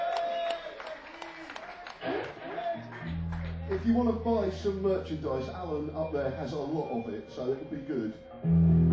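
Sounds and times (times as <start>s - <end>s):
audience applause: 0.0s - 3.8s
speech: 3.8s - 8.8s.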